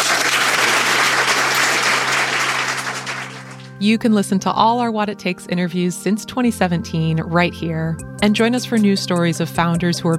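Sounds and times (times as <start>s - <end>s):
audience applause: 0.0s - 3.7s
speech: 3.8s - 10.1s.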